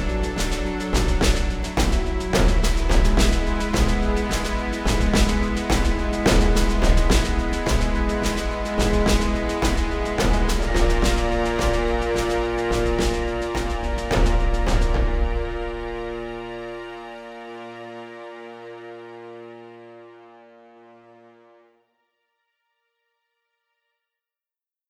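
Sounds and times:
rising tension music: 0:00.0 - 0:18.0.

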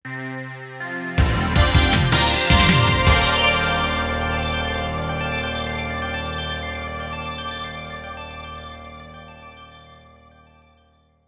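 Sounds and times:
logo jingle: 0:01.2 - 0:10.2.

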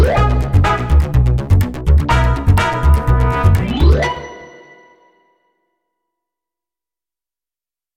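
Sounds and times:
neo jazz full ensemble: 0:00.1 - 0:03.9.

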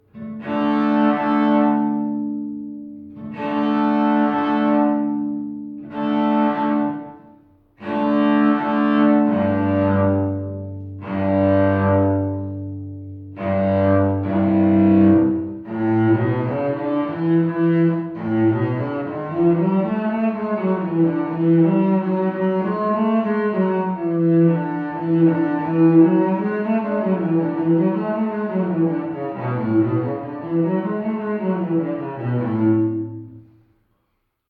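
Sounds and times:
cello playing scales: 0:00.0 - 0:34.0.

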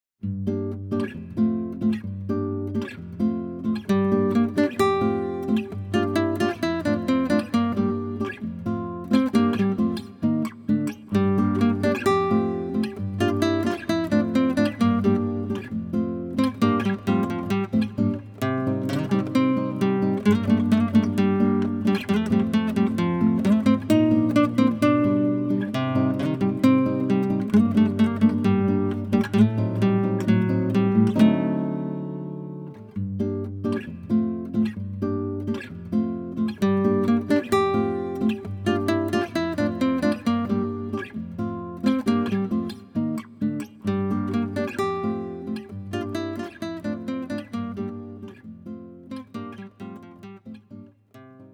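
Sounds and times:
guitar: 0:00.2 - 0:51.5.

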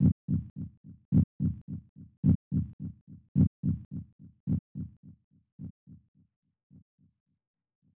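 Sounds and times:
heartbeat: 0:00.0 - 0:05.9.

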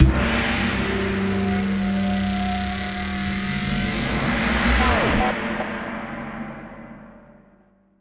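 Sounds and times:
music stings: 0:00.0 - 0:05.6.

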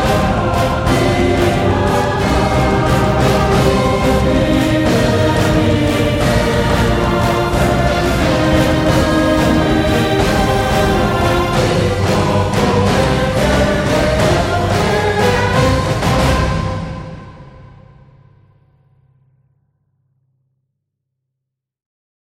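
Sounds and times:
castle level game music: 0:00.0 - 0:16.8.

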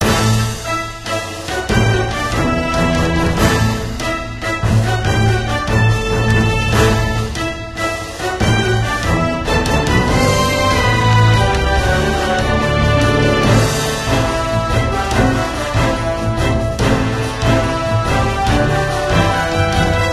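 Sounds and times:
dungeon battle game music: 0:00.0 - 0:20.1.

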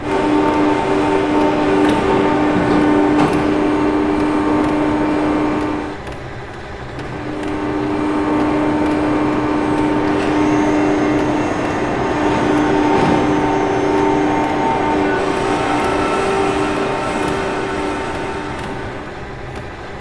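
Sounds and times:
factory exterior ambience: 0:00.0 - 0:19.9.

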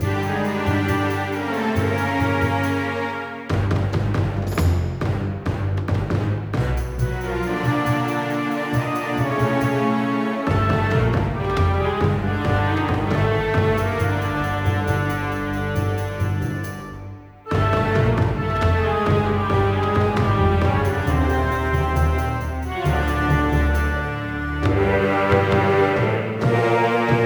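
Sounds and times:
tense music: 0:00.0 - 0:27.2.

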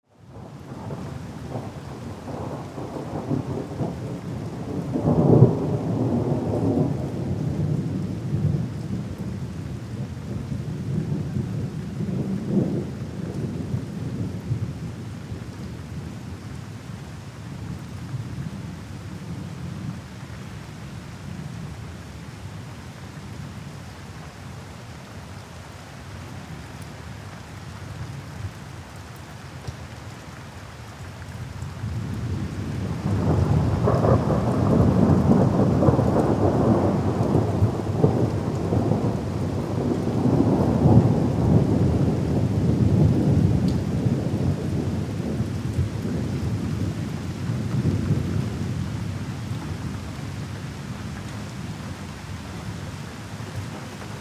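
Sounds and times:
heavy rain in a storm: 0:00.0 - 0:54.2
thunder rumble in a storm: 0:00.3 - 0:09.3, 0:31.8 - 0:50.5.

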